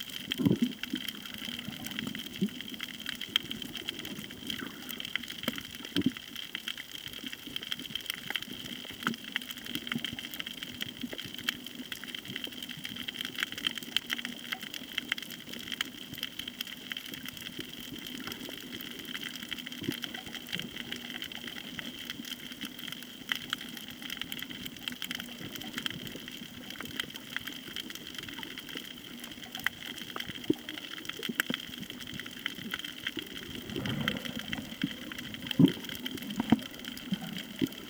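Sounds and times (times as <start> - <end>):
snorkeling at Koh Tao: 0.0 - 37.8
beach at Koh Tao: 33.0 - 37.8.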